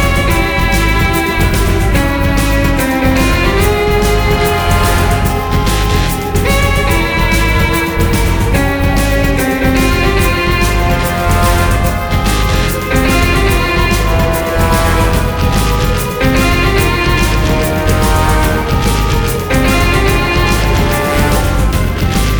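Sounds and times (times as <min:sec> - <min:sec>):
driving music: 0:00.0 - 0:22.3.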